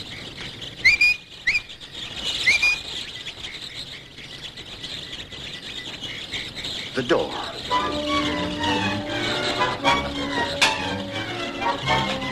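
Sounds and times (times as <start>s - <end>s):
starlings chattering: 0.0s - 12.3s
starlings' high whistled chirps: 0.8s - 3.2s, 7.0s - 12.3s
speech: 7.0s - 10.6s.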